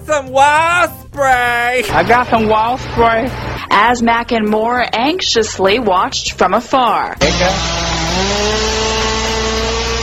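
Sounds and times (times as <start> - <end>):
speech: 0.1 - 8.7
chainsaw cutting through a tree branch: 7.2 - 10.0.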